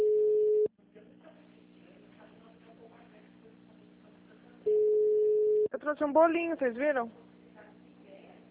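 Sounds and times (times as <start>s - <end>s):
telephone busy signal on unanswered call: 0.0s - 0.7s, 4.7s - 5.7s
speech: 5.9s - 7.2s.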